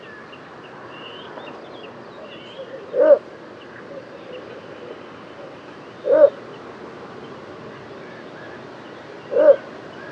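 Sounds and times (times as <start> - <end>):
little bittern barking call: 2.9 - 3.2, 6.0 - 6.4, 9.3 - 9.6.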